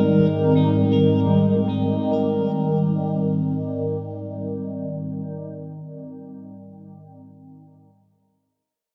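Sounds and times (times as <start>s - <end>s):
live electric guitar in an ambient piece: 0.0s - 5.9s
synth pads in an ambient piece: 0.0s - 7.9s.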